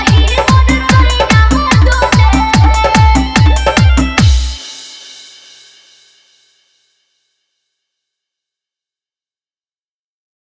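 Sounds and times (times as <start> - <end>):
dance mix music: 0.0 - 4.8.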